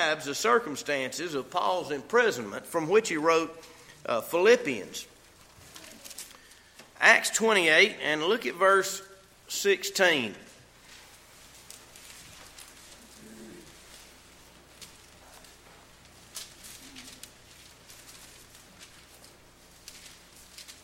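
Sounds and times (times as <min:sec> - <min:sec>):
speech: 0:00.0 - 0:05.1, 0:07.0 - 0:10.4
book pages turning: 0:05.3 - 0:06.8, 0:10.8 - 0:20.8.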